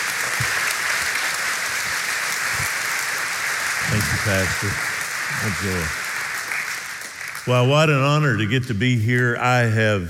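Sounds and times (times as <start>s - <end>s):
audience applause in church welcoming a guest speaker: 0.0s - 7.8s
speech: 4.0s - 6.0s, 7.4s - 10.0s.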